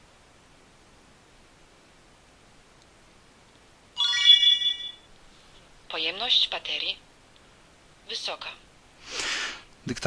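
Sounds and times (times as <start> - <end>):
digital voice recorder start-up tone: 4.0 - 5.1
speech: 6.0 - 7.1, 8.1 - 9.2, 9.9 - 10.0.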